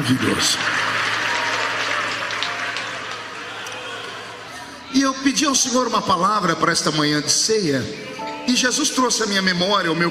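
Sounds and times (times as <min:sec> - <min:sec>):
audience applauding: 0:00.0 - 0:04.7
speech: 0:00.1 - 0:00.9, 0:04.9 - 0:10.0.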